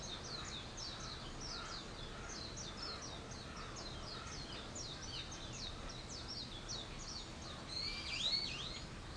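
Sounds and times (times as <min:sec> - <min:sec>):
birds chirping: 0:00.0 - 0:09.1.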